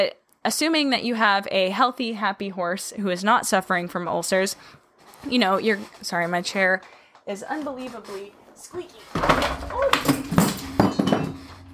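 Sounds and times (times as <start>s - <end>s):
speech: 0.0s - 10.3s
shelf knocked over and statue breaking: 9.1s - 11.7s.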